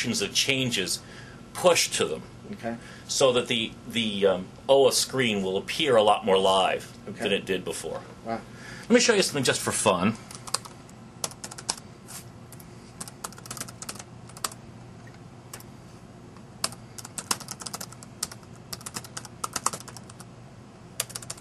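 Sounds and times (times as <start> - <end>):
speech: 0.0 - 10.3
low steady hum: 0.0 - 21.3
computer keyboard typing: 10.3 - 11.8, 12.5 - 14.6, 16.6 - 20.3, 21.0 - 21.3.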